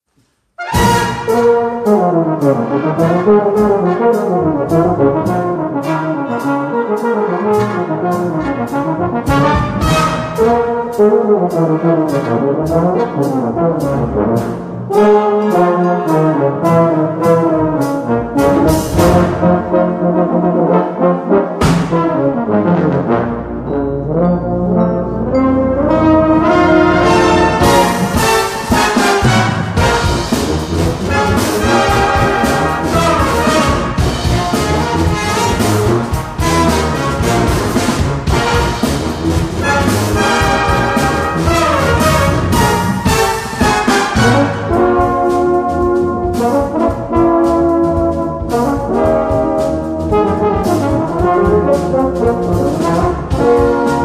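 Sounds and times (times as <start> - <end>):
euphonium and baritone section: 0.6 - 54.0.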